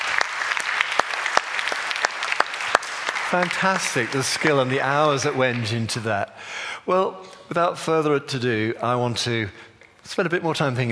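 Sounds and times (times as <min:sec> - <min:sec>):
audience clapping: 0:00.0 - 0:06.3
speech: 0:03.3 - 0:10.9.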